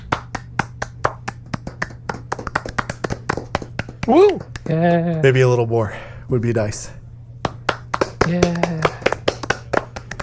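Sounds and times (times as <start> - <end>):
brisk hand clapping: 0.0 - 5.0, 7.4 - 10.2
faint low hum: 0.0 - 10.2
speech: 4.0 - 7.0, 8.2 - 8.8.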